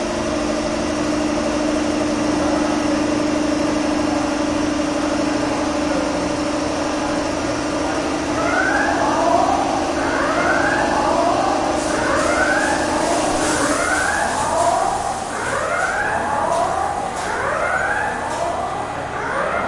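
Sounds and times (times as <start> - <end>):
heavy machine hum in an industrial workshop factory: 0.0 - 19.6.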